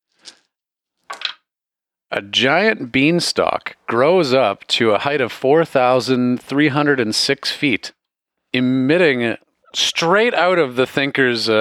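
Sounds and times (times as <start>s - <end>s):
rolling a bunch of dice: 1.1s - 1.4s
speech: 2.1s - 11.5s.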